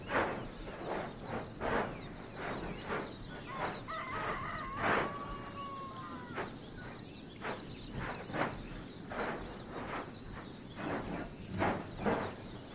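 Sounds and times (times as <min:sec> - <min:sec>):
high-pitched insect hum: 0:00.0 - 0:12.7
thumping bursts: 0:00.0 - 0:12.7
bird wavering harmonic call: 0:03.3 - 0:07.0.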